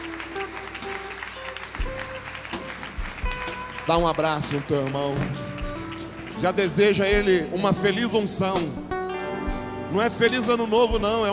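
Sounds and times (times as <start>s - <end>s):
audience applauding: 0.0s - 7.5s
speech: 3.9s - 5.5s, 6.4s - 8.8s, 9.9s - 11.3s.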